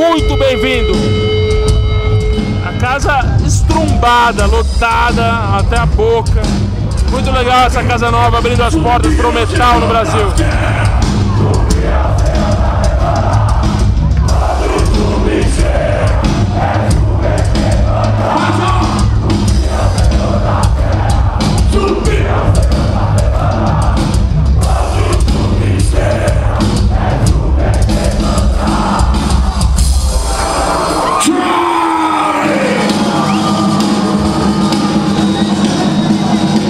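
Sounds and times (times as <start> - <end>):
speech: 0.2 - 1.1, 3.0 - 11.0
packed concert crowd cheering wildly: 2.3 - 4.6, 9.1 - 36.6.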